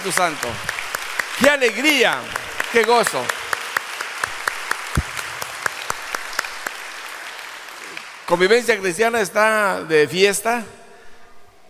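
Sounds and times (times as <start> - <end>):
speech: 0.0 - 0.8, 1.4 - 3.3, 8.3 - 10.8
rhythmic clapping from a church congregation: 0.0 - 8.6.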